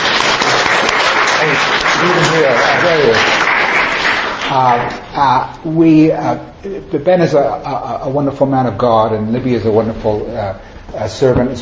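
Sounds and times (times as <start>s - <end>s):
audience applauding: 0.0s - 4.9s
speech: 4.5s - 11.6s.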